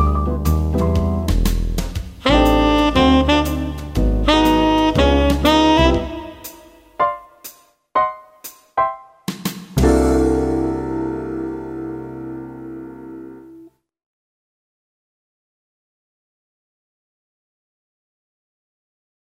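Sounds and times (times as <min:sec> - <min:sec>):
jazz melody: 0:00.0 - 0:13.7.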